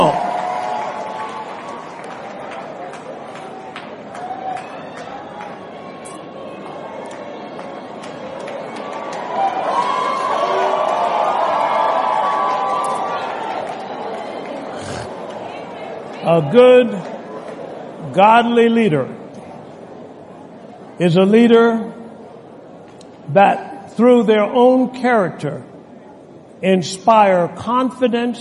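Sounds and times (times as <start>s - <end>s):
audience clapping and cheering: 0.0s - 5.9s, 6.6s - 16.2s
speech: 16.3s - 17.1s, 18.1s - 19.2s, 21.0s - 21.9s, 23.4s - 25.7s, 26.6s - 28.3s.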